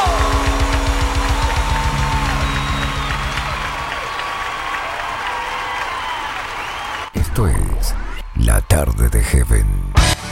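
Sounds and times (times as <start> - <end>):
applause: 0.0 - 7.8
crowd shout of joy: 0.0 - 8.2
speech: 7.4 - 10.0.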